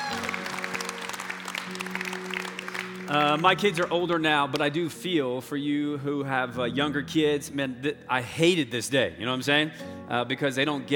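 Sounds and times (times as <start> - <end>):
audience applauding: 0.0 - 4.2
speech: 3.1 - 10.9.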